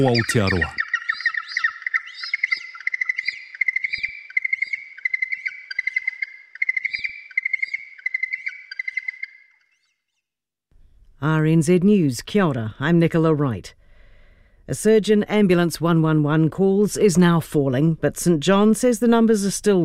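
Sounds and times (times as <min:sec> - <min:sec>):
speech: 0:00.0 - 0:00.8, 0:11.2 - 0:13.8, 0:14.7 - 0:19.8
yellow-eyed penguin calls: 0:00.0 - 0:09.3.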